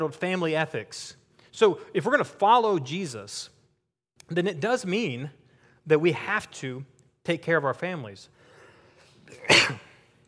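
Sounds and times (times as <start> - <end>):
speech: 0.0 - 3.6, 4.3 - 8.4, 9.3 - 9.9
cough: 9.3 - 10.1.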